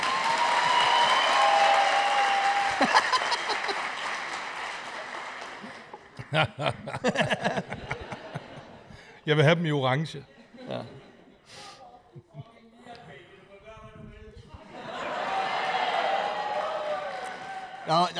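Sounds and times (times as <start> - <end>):
audience clapping: 0.0 - 8.2, 14.9 - 18.1
laughter: 2.6 - 4.1, 5.6 - 9.1, 10.3 - 11.4, 12.0 - 12.7, 14.5 - 16.5
speech: 2.8 - 3.1, 6.3 - 7.6, 9.3 - 11.0, 17.9 - 18.1.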